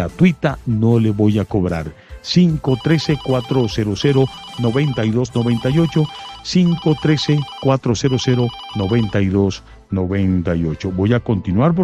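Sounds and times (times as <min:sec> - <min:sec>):
speech: 0:00.0 - 0:11.8
telephone ringing with an incoming call: 0:02.6 - 0:09.3.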